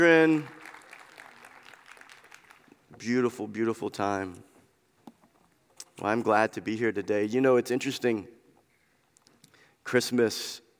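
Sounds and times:
speech: 0.0 - 0.6, 3.0 - 4.5, 6.0 - 8.4, 9.8 - 10.6
audience applause: 0.0 - 2.8.

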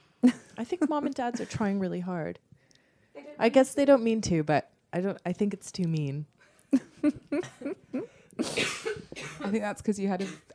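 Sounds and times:
speech: 0.2 - 2.5, 3.4 - 10.5
person coughing: 7.4 - 9.5, 10.2 - 10.5.

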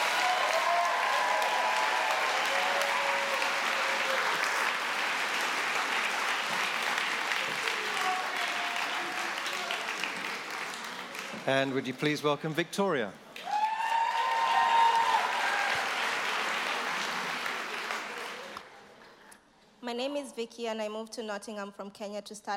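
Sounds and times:
audience applauding: 0.0 - 12.2, 13.4 - 18.7
speech: 11.4 - 13.2, 20.4 - 22.5.

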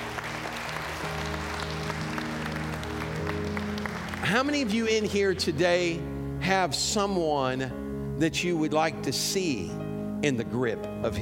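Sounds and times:
audience hand clapping: 0.0 - 5.2
speech: 4.3 - 11.2.

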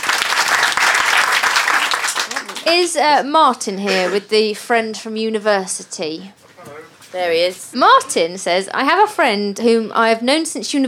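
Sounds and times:
crowd applauding: 0.0 - 3.1
speech: 2.6 - 6.5, 7.1 - 10.8.

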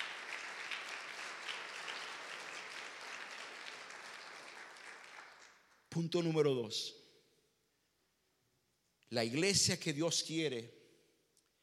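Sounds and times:
audience applauding: 0.0 - 5.8
speech: 6.0 - 7.0, 9.1 - 10.8.

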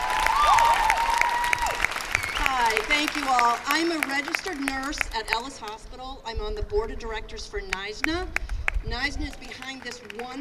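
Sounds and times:
audience applause at a nurses' union rally: 0.0 - 5.0
speech: 3.0 - 10.3.

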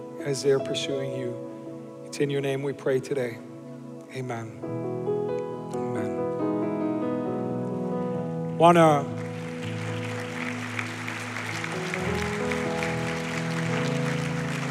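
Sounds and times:
sustained keyboard chords: 0.0 - 14.7
speech: 0.2 - 1.5, 2.1 - 3.5, 4.1 - 5.1, 8.6 - 9.2
audience clapping: 8.9 - 14.7.

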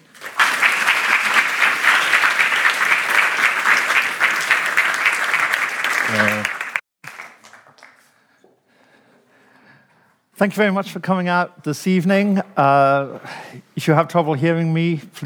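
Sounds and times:
audience applause: 0.0 - 8.1
speech: 10.4 - 15.2.

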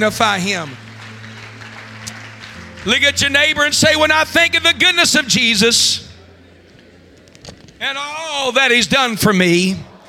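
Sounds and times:
speech: 0.0 - 0.8, 2.8 - 6.1, 7.8 - 9.9
audience clapping hands: 0.0 - 4.6.

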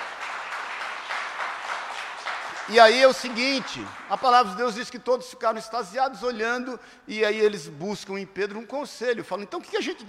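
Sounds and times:
audience applauding: 0.0 - 4.8
speech: 2.7 - 10.0.

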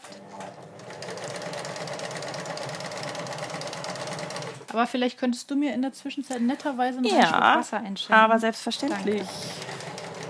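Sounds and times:
sewing machine stitching: 0.0 - 4.7, 8.8 - 10.2
speech: 4.7 - 9.6.

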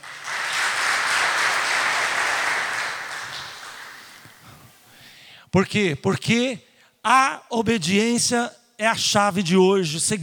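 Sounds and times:
church audience applauding: 0.0 - 4.5
speech: 5.5 - 10.2.

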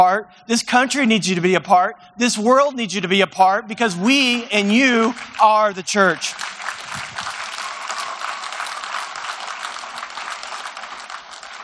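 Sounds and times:
speech: 0.0 - 7.2
audience of children clapping: 4.7 - 11.6.

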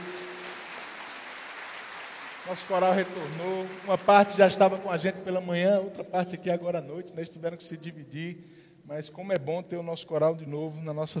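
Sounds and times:
audience applauding the choir: 0.0 - 5.0
speech: 2.4 - 11.1.

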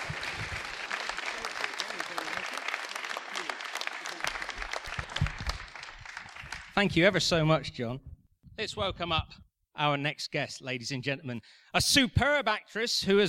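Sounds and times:
crowd clapping for actor John Bruce at The Bill reunion event: 0.0 - 7.3
speech: 6.8 - 13.2.

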